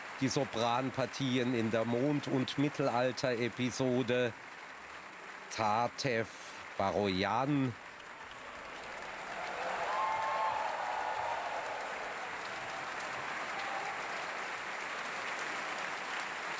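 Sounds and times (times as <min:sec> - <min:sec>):
opera audience applause for a singer: 0:00.0 - 0:16.5
speech: 0:00.2 - 0:04.6, 0:05.5 - 0:07.8.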